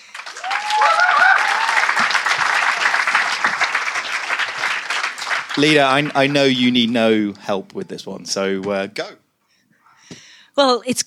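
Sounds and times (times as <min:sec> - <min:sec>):
audience applause: 0:00.0 - 0:07.4
speech: 0:05.6 - 0:09.2, 0:10.6 - 0:11.0.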